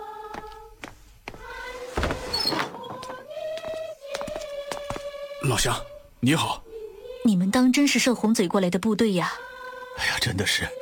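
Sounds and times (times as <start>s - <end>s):
wooden door creaking open on a squeaky hinge: 1.9s - 3.1s
speech: 5.5s - 6.6s, 7.2s - 10.8s.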